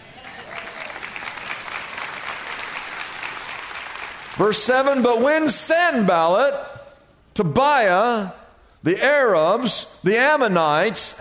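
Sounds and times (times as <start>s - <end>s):
audience applause: 0.0s - 5.2s
speech: 4.4s - 6.8s, 7.4s - 11.1s.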